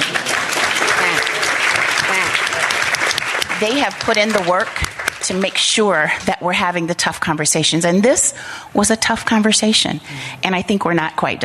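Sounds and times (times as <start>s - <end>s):
audience round of applause: 0.0s - 5.6s
speech: 3.6s - 11.4s.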